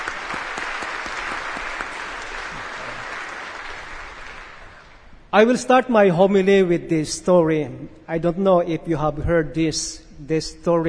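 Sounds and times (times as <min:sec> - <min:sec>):
audience applause: 0:00.0 - 0:05.0
speech: 0:05.3 - 0:10.8.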